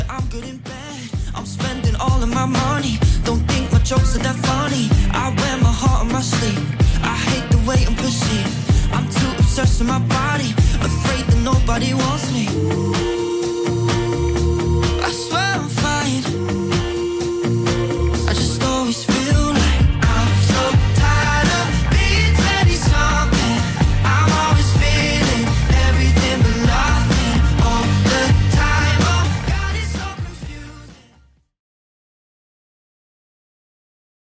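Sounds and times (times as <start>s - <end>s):
Top40 pop dance track: 0.0s - 31.1s.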